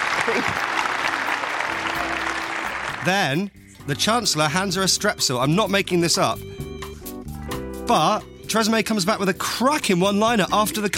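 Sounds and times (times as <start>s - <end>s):
audience applause: 0.0s - 3.1s
speech: 0.3s - 0.6s, 3.0s - 6.6s, 7.9s - 10.9s.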